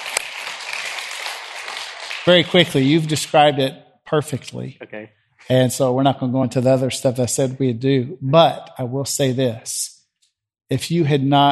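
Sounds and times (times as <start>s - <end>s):
audience clapping: 0.0s - 3.5s
speech: 2.3s - 10.0s, 10.7s - 11.5s.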